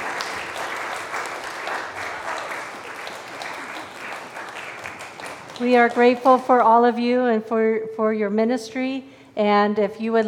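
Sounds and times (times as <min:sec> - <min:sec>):
audience applauding: 0:00.0 - 0:06.4
speech: 0:05.6 - 0:10.2.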